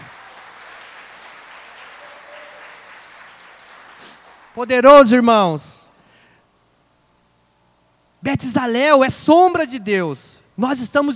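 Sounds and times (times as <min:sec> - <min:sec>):
audience applause: 0:00.0 - 0:04.6
speech: 0:04.6 - 0:05.8, 0:08.2 - 0:11.1.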